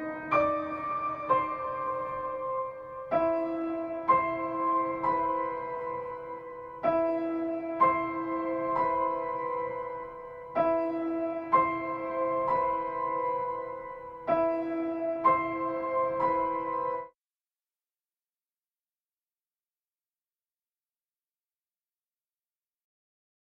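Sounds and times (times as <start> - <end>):
piano melody: 0.0 - 17.2.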